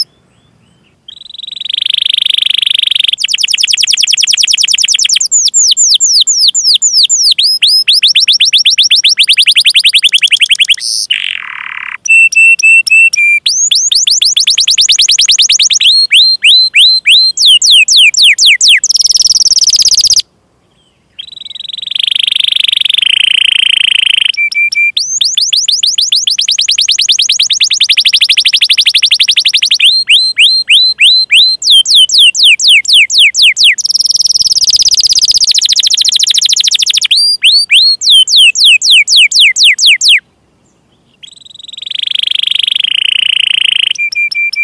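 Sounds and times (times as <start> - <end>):
canary song of trills: 0.0 - 40.2, 40.9 - 44.6.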